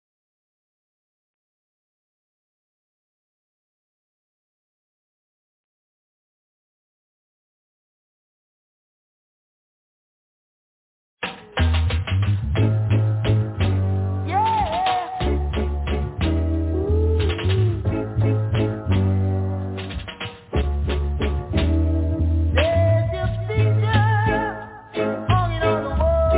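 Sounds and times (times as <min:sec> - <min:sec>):
socially conscious reggae music: 0:11.2 - 0:26.3.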